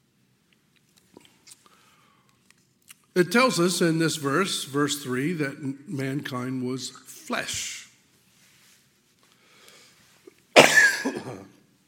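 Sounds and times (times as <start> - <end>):
speech: 3.2 - 7.8
man clearing his throat: 10.6 - 11.6
man coughing: 10.6 - 11.6.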